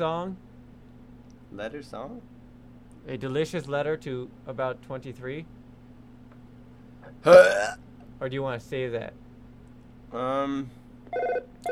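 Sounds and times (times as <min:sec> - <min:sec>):
speech: 0:00.0 - 0:00.5, 0:01.5 - 0:02.4, 0:03.0 - 0:05.6, 0:07.0 - 0:09.2, 0:10.1 - 0:11.4
low steady hum: 0:00.0 - 0:11.7
telephone ringing on a radio call-in line: 0:11.1 - 0:11.7.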